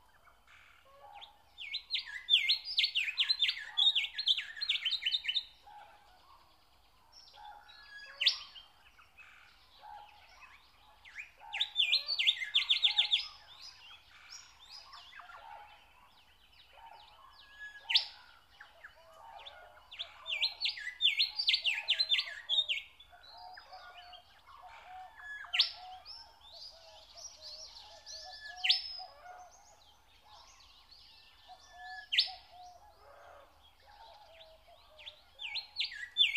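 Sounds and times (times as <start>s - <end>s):
nightingale singing in nature: 1.6s - 5.6s, 10.4s - 15.2s, 19.9s - 30.5s, 31.2s - 32.9s, 33.8s - 36.3s.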